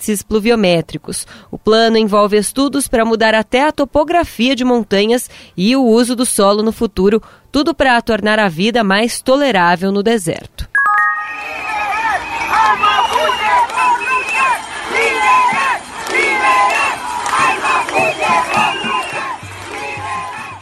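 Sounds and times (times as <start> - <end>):
speech: 0.0 - 10.8
large protest crowd shouting and chanting in the street: 11.3 - 20.6.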